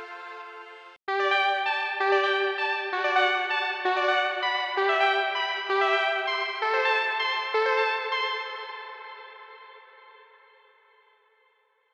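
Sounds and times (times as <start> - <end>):
synthwave music: 0.0 - 10.0.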